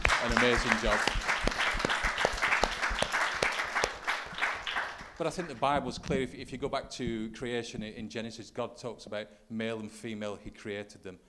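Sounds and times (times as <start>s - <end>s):
crowd applauding: 0.0s - 5.6s
speech: 0.2s - 1.3s, 5.2s - 11.2s.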